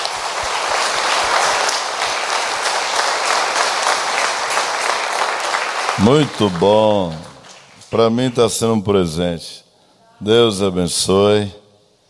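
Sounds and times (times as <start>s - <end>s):
audience applause: 0.0s - 8.0s
speech: 6.0s - 7.3s, 7.9s - 9.6s, 10.2s - 11.6s.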